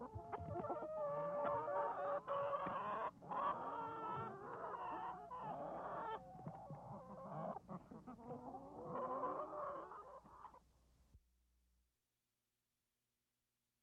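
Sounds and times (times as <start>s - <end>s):
chickens clucking and cackling: 0.0s - 10.6s.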